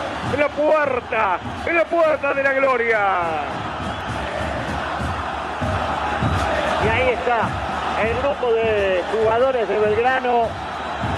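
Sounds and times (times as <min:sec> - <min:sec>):
large stadium crowd roaring and cheering: 0:00.0 - 0:11.1
speech: 0:00.2 - 0:03.9, 0:06.9 - 0:11.1.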